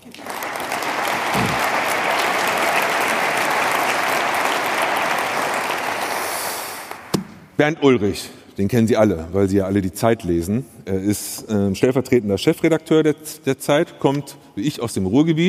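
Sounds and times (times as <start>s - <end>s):
audience applause: 0.0s - 7.2s
speech: 7.6s - 15.4s.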